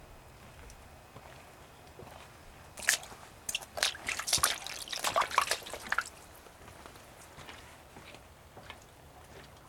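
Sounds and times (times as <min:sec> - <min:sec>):
puddle: 0:02.8 - 0:06.4.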